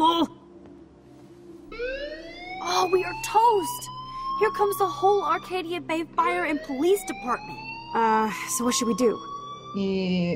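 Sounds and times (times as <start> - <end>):
alarm going off: 1.7 - 9.9
speech: 2.9 - 10.3.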